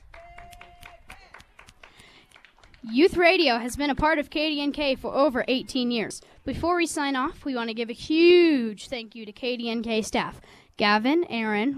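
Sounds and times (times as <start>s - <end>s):
faint audience hand claps: 0.0s - 3.2s
speech: 2.8s - 11.7s.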